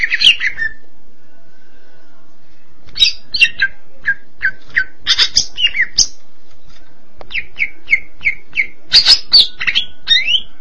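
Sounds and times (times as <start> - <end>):
greater green leafbird singing cucak ijo song: 0.0 - 0.8, 2.9 - 6.2, 7.3 - 10.5.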